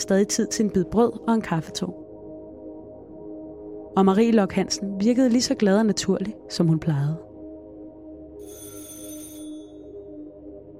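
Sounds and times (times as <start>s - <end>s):
speech: 0.0s - 2.0s, 4.0s - 7.3s
doorbell ringing: 8.4s - 9.9s.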